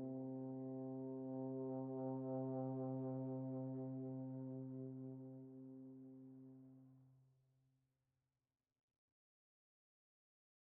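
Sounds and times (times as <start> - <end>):
ambient music: 0.0 - 6.8.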